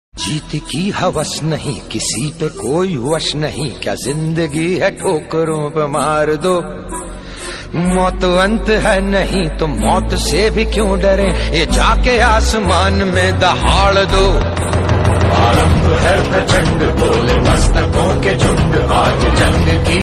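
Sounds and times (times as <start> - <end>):
motivational attitude song ringtone: 0.2 - 20.0.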